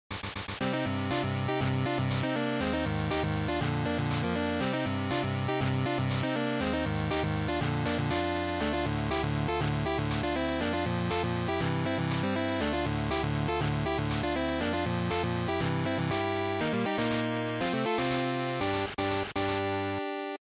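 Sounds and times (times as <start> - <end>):
fighting game title music: 0.1 - 20.3.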